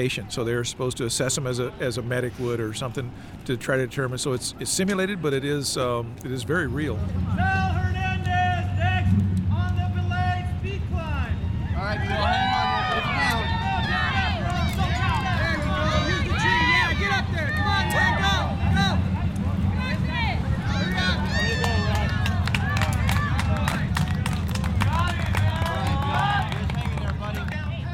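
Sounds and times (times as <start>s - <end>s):
speech: 0.0s - 7.8s
crowd cheering the climbers on: 7.3s - 27.9s.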